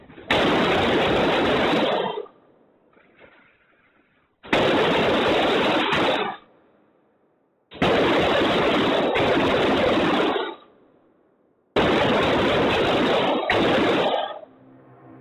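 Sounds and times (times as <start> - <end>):
gunshots in recorded audio: 0.0 - 2.4, 3.0 - 6.5, 7.7 - 10.8, 11.7 - 14.5.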